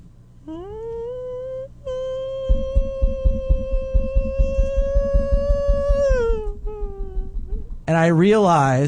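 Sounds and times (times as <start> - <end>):
speech: 0.5 - 0.8, 7.9 - 8.8
voice imitating a woman screaming while running past: 2.2 - 7.5
fast run of rhythmic low thumps: 2.4 - 8.8.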